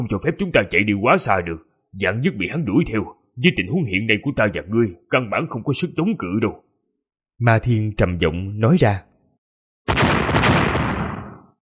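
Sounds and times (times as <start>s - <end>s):
speech: 0.0s - 6.7s, 7.4s - 9.1s
loud booming explosion inside a cauldron: 9.9s - 11.6s.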